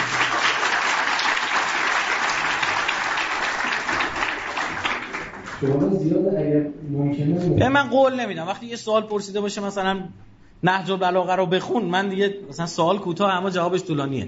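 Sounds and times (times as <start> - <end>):
audience clapping: 0.0 - 5.9
speech: 5.6 - 14.2.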